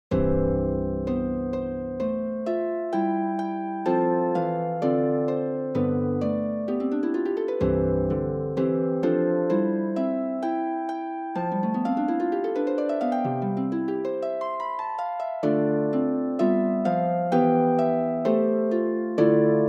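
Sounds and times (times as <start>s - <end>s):
popular folk song on the harp: 0.1s - 19.6s.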